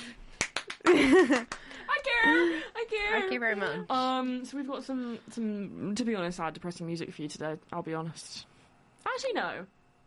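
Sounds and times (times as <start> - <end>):
hand clapping: 0.0 - 1.9
laughter: 0.8 - 2.6
speech: 0.8 - 8.5, 9.1 - 9.8.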